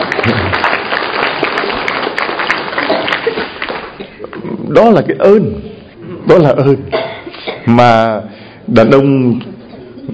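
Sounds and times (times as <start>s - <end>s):
audience applause: 0.0s - 4.4s
speech: 4.8s - 5.7s, 6.3s - 7.0s, 7.6s - 9.5s.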